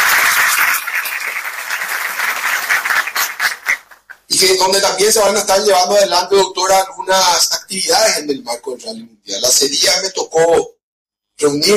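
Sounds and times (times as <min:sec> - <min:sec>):
audience applause: 0:00.0 - 0:04.2
speech: 0:04.4 - 0:10.8, 0:11.4 - 0:11.7.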